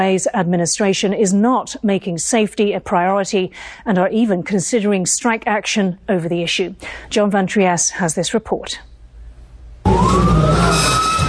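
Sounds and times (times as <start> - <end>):
speech: 0.0 - 8.9
emergency vehicle siren wailing: 9.8 - 11.2.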